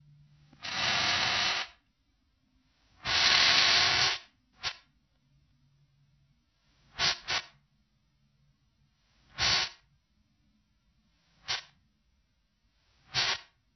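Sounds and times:
steam venting: 0.6 - 1.8, 3.0 - 4.8, 6.9 - 7.5, 9.3 - 9.8, 13.1 - 13.5.

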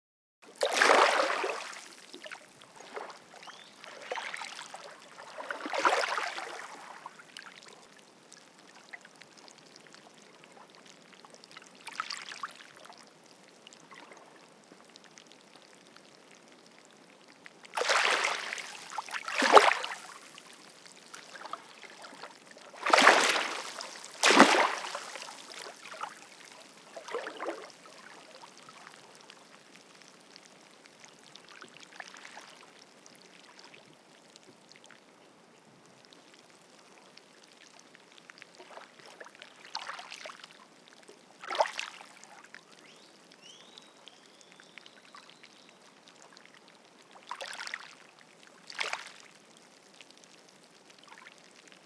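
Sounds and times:
water at the beach: 0.4 - 51.8.

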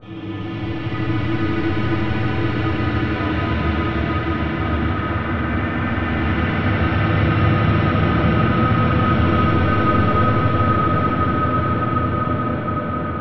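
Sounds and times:
drone soundscape: 0.0 - 13.1.

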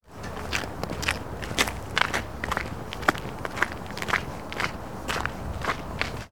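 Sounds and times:
footsteps on ice: 0.2 - 6.3.

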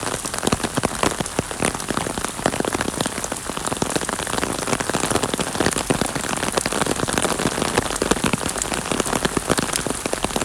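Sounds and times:
rain on an umbrella: 0.0 - 10.4.

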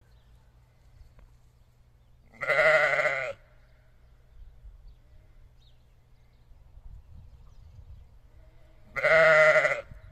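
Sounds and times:
sheep bleating: 2.3 - 3.4, 8.5 - 10.0.

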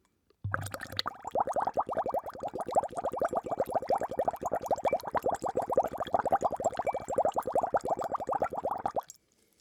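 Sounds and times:
bubbles bubbling: 0.5 - 9.1.

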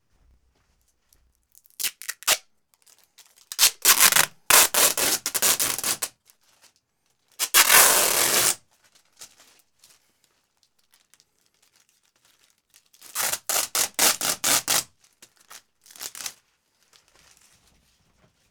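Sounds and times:
wide adhesive tape: 1.8 - 2.4, 3.5 - 6.1, 7.4 - 8.6, 13.2 - 14.8.

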